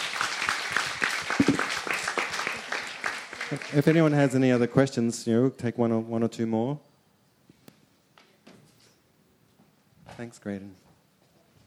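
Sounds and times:
audience applause: 0.0 - 5.0
speech: 3.5 - 6.9, 10.2 - 10.9.

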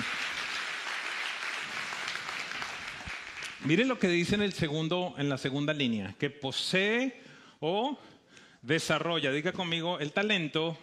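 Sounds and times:
audience clapping: 0.0 - 4.2
speech: 3.6 - 10.8.

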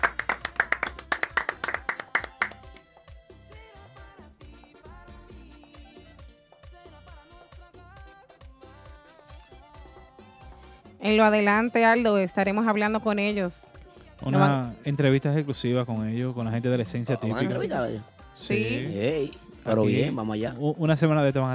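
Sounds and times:
applause, hands clapping: 0.0 - 3.1
speech: 11.0 - 21.5.

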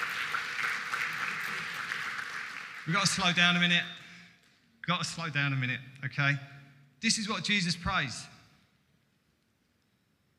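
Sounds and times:
audience applause: 0.0 - 3.6
speech: 2.9 - 4.0, 4.9 - 8.3.

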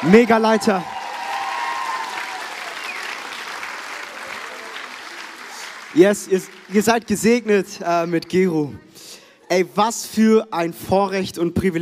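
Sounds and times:
speech: 0.0 - 0.9, 6.0 - 11.8
audience applause: 0.0 - 7.2.

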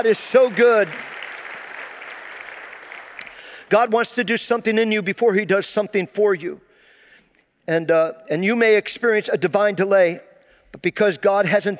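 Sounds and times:
speech: 0.0 - 1.2, 3.7 - 6.6, 7.7 - 11.7
crowd clapping: 0.0 - 3.7.

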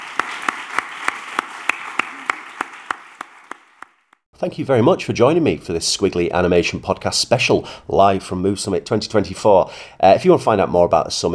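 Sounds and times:
audience applause: 0.0 - 4.1
speech: 4.4 - 11.3.

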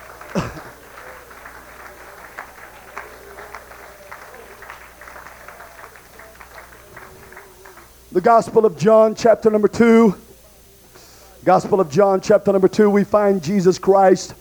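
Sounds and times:
audience hand clapping: 0.0 - 9.6
speech: 8.2 - 10.2, 11.4 - 14.3.

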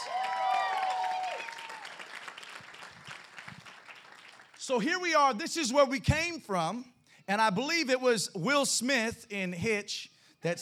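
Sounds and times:
audience applause: 0.0 - 4.6
speech: 4.7 - 10.5.

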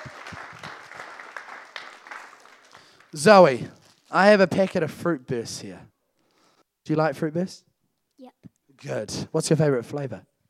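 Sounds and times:
round of applause from a crowd: 0.0 - 3.6
speech: 3.1 - 5.9, 6.9 - 10.3.

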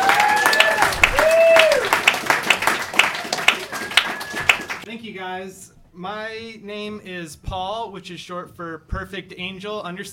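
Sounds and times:
high sliding whistles and cheers: 0.0 - 2.2, 3.0 - 4.8
audience round of applause: 0.0 - 4.8
speech: 5.2 - 10.1.

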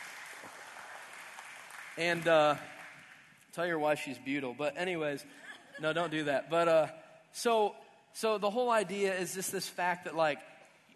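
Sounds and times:
crowd applauding: 0.0 - 3.4
speech: 2.0 - 2.8, 3.6 - 10.5.

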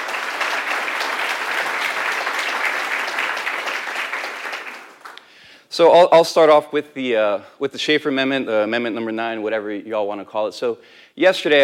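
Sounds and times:
audience applause: 0.0 - 5.2
speech: 5.8 - 11.6.

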